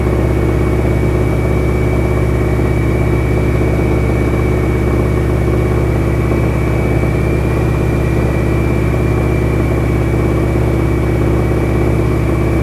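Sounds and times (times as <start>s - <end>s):
AT-6D Harvard Mk III training aircraft flying interior: 0.0s - 12.6s.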